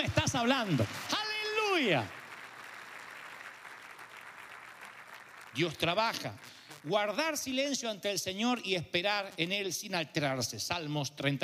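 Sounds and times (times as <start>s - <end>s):
audience applauding: 0.0s - 7.4s
speech: 0.4s - 1.1s, 1.8s - 2.2s, 5.6s - 11.4s.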